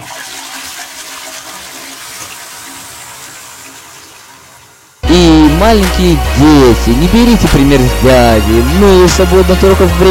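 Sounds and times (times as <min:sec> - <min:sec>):
toilet flushing: 0:00.0 - 0:05.0
speech: 0:05.6 - 0:10.0.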